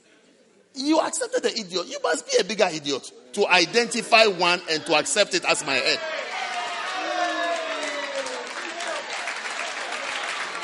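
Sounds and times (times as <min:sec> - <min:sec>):
speech: 0:00.8 - 0:06.2
audience clapping: 0:06.2 - 0:10.6.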